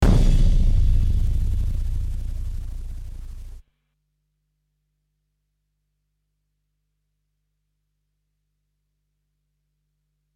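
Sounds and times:
rhythm: 0.0s - 3.6s.

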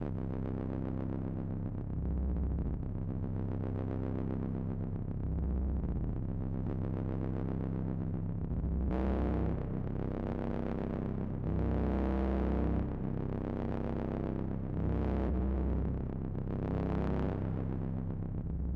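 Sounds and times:
bass: 0.0s - 18.7s.

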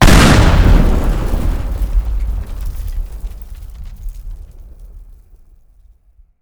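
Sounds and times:
explosion: 0.0s - 4.8s.

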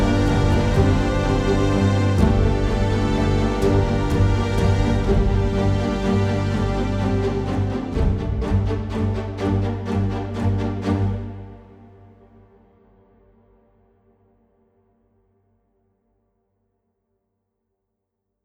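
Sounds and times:
exploration music: 0.0s - 11.1s.

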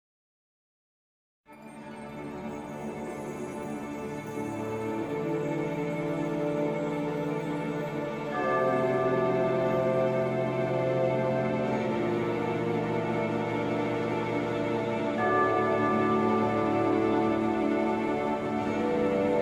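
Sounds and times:
contrabassoon music cue: 3.2s - 19.3s.

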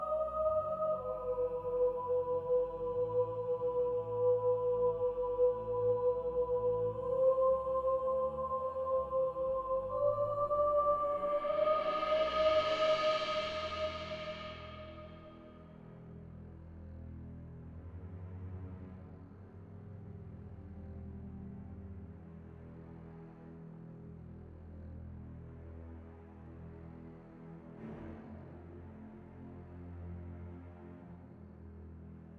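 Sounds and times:
bass ambience: 0.2s - 15.9s.

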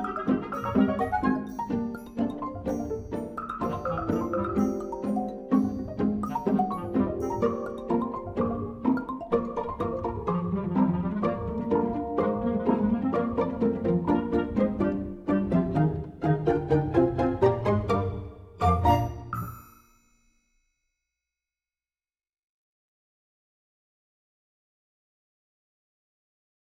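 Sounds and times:
instrumental music: 0.0s - 20.0s.

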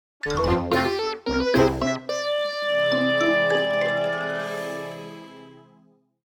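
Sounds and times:
defeat jingle: 0.2s - 5.9s.

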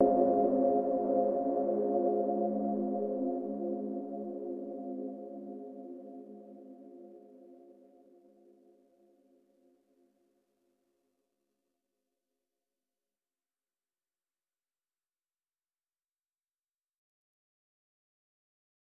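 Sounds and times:
overlay tone: 0.0s - 5.4s.

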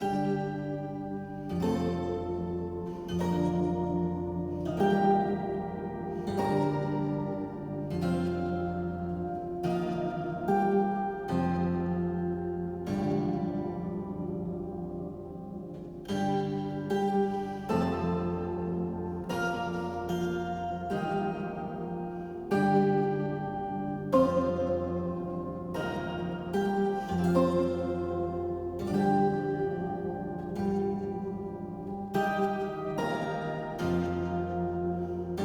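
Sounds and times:
lute playing: 0.0s - 35.4s.

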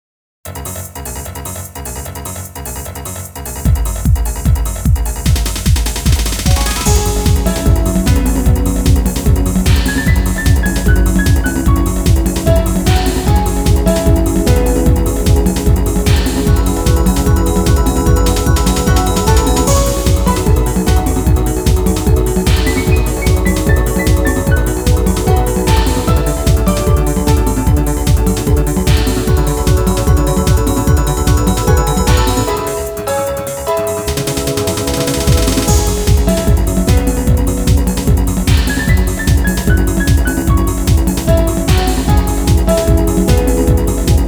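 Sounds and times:
techno battle music: 0.5s - 44.2s.

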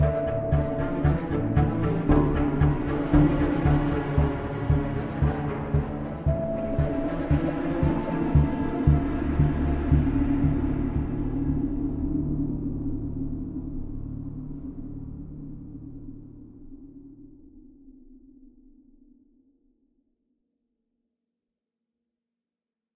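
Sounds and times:
string instrument: 0.0s - 15.5s.

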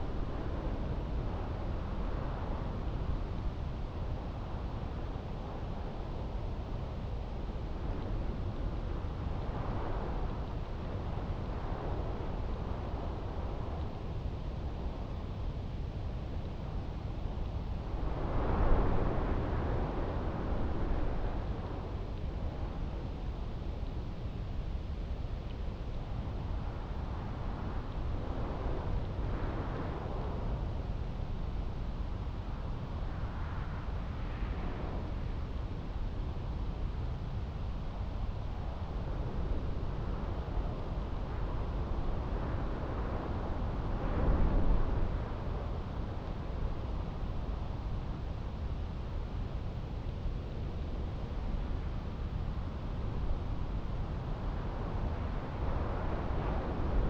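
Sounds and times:
wind in the mountains: 0.0s - 57.0s.

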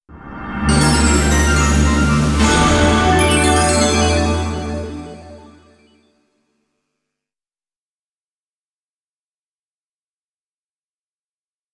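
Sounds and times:
news jingle: 0.1s - 5.8s.

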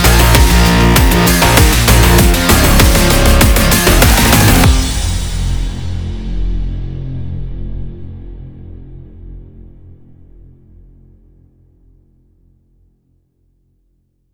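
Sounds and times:
powerful aggressive electro sport music: 0.0s - 6.0s.

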